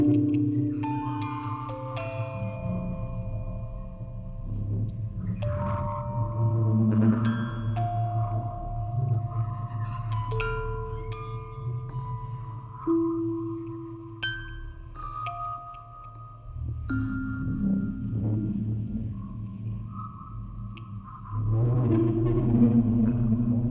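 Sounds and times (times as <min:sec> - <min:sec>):
music box quartet playing: 0:00.0 - 0:19.5
field recording: 0:00.0 - 0:23.6.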